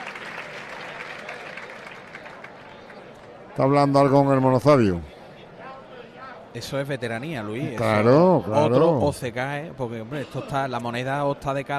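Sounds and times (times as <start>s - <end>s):
large crowd applause in a bullring: 0.0s - 3.9s
faint murmur of voices: 0.6s - 11.7s
speech: 3.6s - 5.1s, 6.6s - 11.7s.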